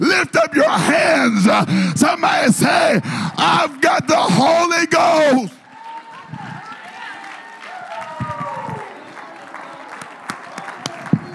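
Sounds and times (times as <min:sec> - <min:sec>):
speech: 0:00.0 - 0:00.6, 0:01.5 - 0:05.1
audience clapping hands: 0:03.6 - 0:11.3.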